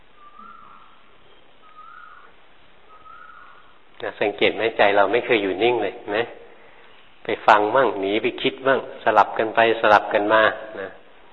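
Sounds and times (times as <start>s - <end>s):
clear whistled bird call outdoors: 0.0s - 3.8s
faint constant hiss: 0.0s - 11.3s
speech: 4.0s - 6.4s, 7.2s - 11.0s.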